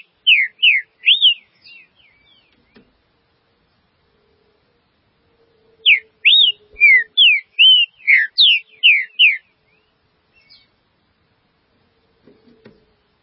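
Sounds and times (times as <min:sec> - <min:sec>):
green-winged saltator song of slurred whistles: 0:00.0 - 0:02.8, 0:05.8 - 0:10.7.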